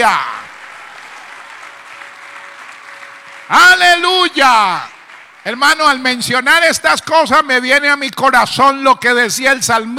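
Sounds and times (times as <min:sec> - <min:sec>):
speech: 0:00.0 - 0:00.4, 0:03.5 - 0:09.9
audience applause: 0:00.0 - 0:06.5.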